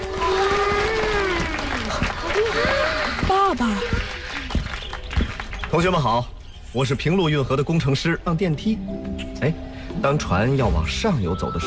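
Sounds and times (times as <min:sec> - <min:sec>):
audience applause: 0:00.0 - 0:06.1
speech: 0:05.7 - 0:11.6.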